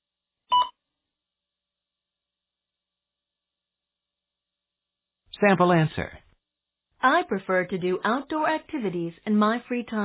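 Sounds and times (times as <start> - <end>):
short electronic beep: 0.5 - 0.7
speech: 5.4 - 6.2, 7.0 - 10.0.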